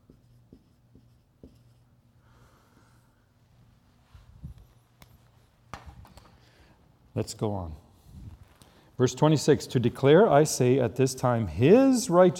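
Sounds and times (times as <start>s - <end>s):
scratchy writing strokes of a word during a Bible lesson: 0.0s - 1.9s
speech: 7.2s - 7.8s, 9.0s - 12.3s.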